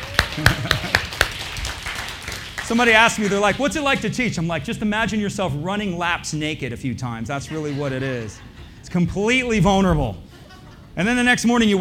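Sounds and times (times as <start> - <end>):
audience clapping: 0.0 - 4.4
laughter: 0.2 - 1.2, 7.3 - 11.3
speech: 0.4 - 0.7, 2.7 - 10.3, 11.0 - 11.7.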